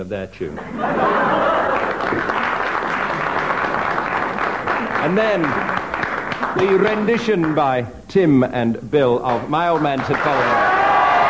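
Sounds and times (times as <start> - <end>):
speech: 0.0 - 2.5, 5.0 - 5.8, 6.6 - 10.7
laughter: 0.6 - 4.0
audience clapping for a musical duo's tune: 1.3 - 7.8, 9.2 - 11.2.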